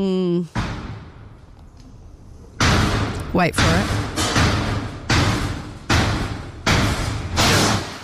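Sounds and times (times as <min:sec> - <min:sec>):
speech: 0:00.0 - 0:00.6, 0:03.3 - 0:04.0
banging from elevator under construction: 0:02.5 - 0:08.0.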